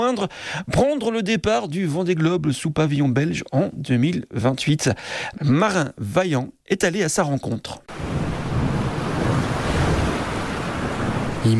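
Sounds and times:
speech: 0:00.0 - 0:08.2
gusting wind: 0:07.9 - 0:11.5
rough sea waves pounding a boat hull: 0:07.9 - 0:11.5.

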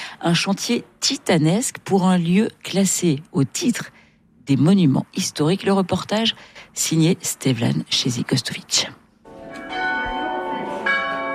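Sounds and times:
speech: 0:00.2 - 0:09.0
two church bells ringing: 0:09.3 - 0:11.3.

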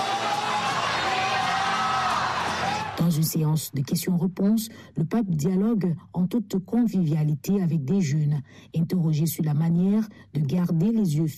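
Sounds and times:
stadium crowd cheering Pope Leo XIV in the popemobile: 0:00.0 - 0:03.2
speech: 0:03.0 - 0:11.3.

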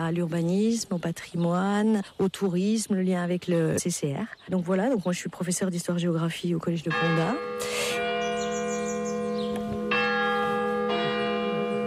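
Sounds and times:
speech: 0:00.0 - 0:08.1
church bell ringing: 0:06.8 - 0:11.8.

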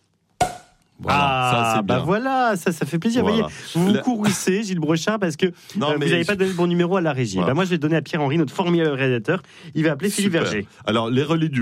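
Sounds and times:
champagne cork popping: 0:00.4 - 0:00.9
speech: 0:01.1 - 0:11.6.

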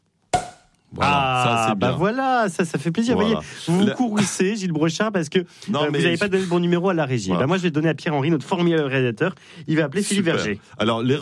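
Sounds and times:
champagne cork popping: 0:00.3 - 0:00.8
speech: 0:00.9 - 0:11.2.

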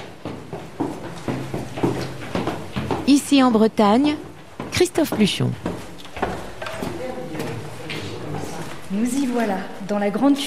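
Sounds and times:
footsteps going down stairs in an old house in Brittany: 0:00.0 - 0:10.4
speech: 0:03.1 - 0:04.2, 0:04.8 - 0:05.7, 0:09.0 - 0:10.4.

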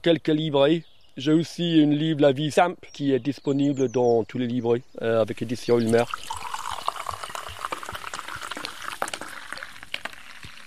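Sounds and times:
speech: 0:00.0 - 0:06.5
drink foaming as it is poured: 0:05.4 - 0:10.6.

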